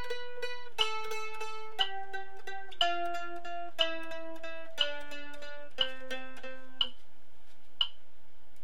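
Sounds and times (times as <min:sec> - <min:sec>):
mandolin playing C scale triplets: 0:00.0 - 0:07.1.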